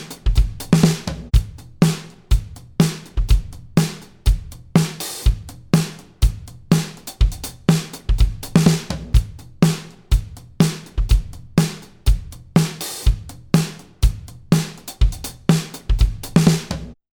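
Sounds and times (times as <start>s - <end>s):
disco drums bypassed: 0.0s - 17.0s.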